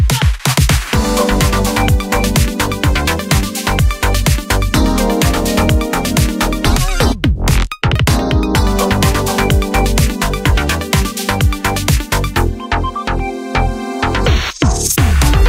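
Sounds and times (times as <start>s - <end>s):
minigame music: 1.0s - 15.4s.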